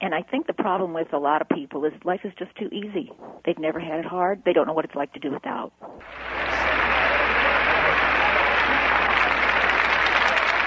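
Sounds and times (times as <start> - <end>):
speech: 0.1 - 6.7
audience applause: 6.0 - 10.6.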